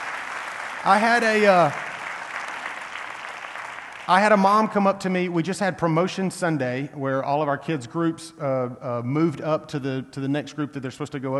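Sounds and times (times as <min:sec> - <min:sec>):
audience clapping hands: 0:00.0 - 0:05.0
speech: 0:00.8 - 0:01.8, 0:04.1 - 0:11.3.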